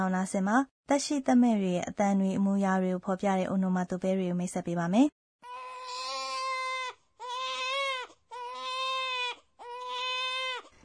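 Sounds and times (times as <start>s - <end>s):
speech: 0.0s - 5.2s
small baby crying: 5.4s - 10.8s.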